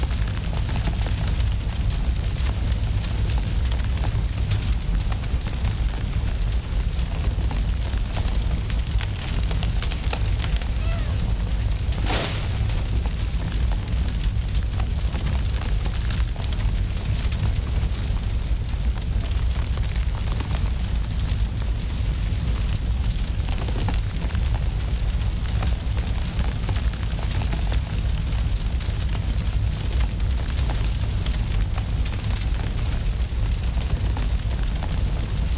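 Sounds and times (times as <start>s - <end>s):
brush fire burning: 0.0s - 35.5s.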